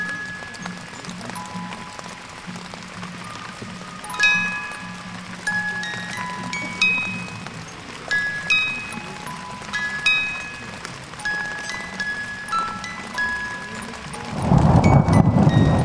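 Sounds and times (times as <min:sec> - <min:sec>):
water droplets: 0:00.0 - 0:15.8
thunder: 0:14.3 - 0:15.8.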